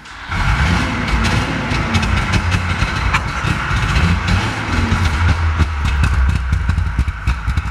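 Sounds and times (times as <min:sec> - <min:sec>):
1965 DKW F12 convertible engine running: 0:00.0 - 0:07.6.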